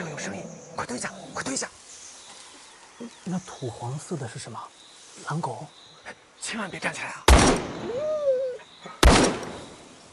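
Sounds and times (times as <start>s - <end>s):
speech: 0.2s - 1.8s, 3.3s - 7.7s
gunshot: 7.3s - 7.9s, 9.0s - 9.8s.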